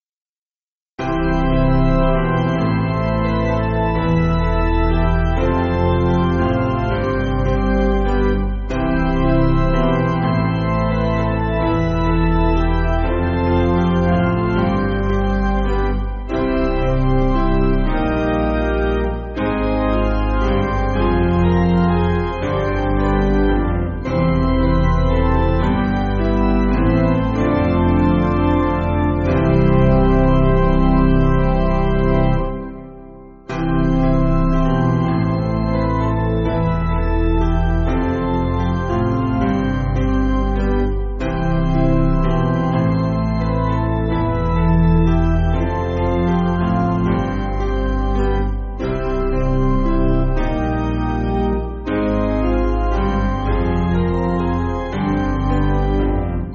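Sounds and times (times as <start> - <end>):
piano: 1.0 - 56.5.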